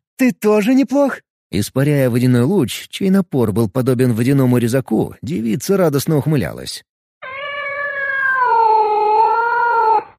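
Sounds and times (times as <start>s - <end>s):
speech: 0.2s - 6.9s
cat screeching: 7.2s - 10.1s.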